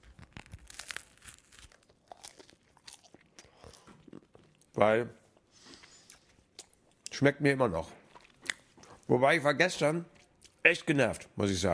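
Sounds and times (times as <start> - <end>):
biting into a bread roll: 0.0 - 4.7
speech: 4.8 - 5.2, 7.2 - 8.0, 9.1 - 11.7.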